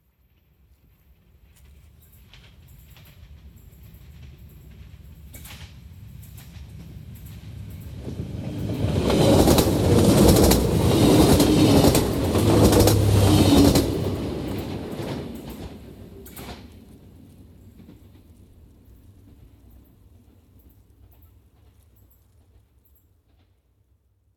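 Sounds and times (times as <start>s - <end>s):
train approaching and passing by fast: 1.2s - 22.6s.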